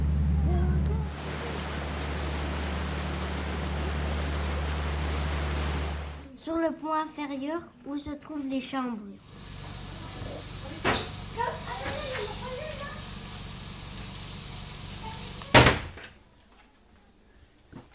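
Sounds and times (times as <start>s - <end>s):
ambience on upper deck of river boat: 0.2s - 6.3s, 9.2s - 15.6s
speech: 6.4s - 9.5s.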